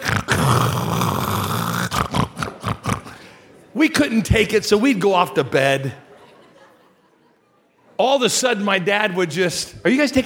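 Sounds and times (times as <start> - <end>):
person imitating a dozing man's snorting: 0.0 - 3.3
speech: 3.8 - 6.0, 8.0 - 10.2
laughter: 5.4 - 7.9.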